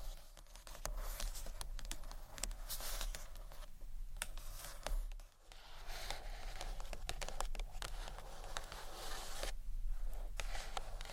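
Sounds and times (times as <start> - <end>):
gentle scratchy tapping on books: 0.0 - 9.6, 10.3 - 11.1.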